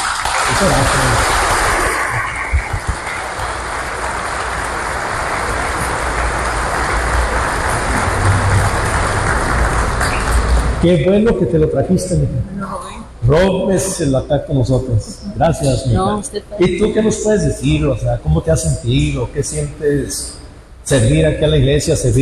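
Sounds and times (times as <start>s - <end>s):
applause: 0.0s - 10.8s
laughter: 0.4s - 3.1s, 13.3s - 18.8s
speech: 0.6s - 1.4s, 10.8s - 22.2s.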